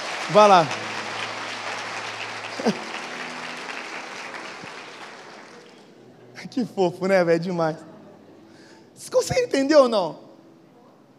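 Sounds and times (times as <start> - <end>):
audience applause: 0.0 - 6.0
speech: 0.3 - 0.8, 2.6 - 2.9, 6.5 - 7.9, 9.0 - 10.2
laughter: 2.5 - 3.2.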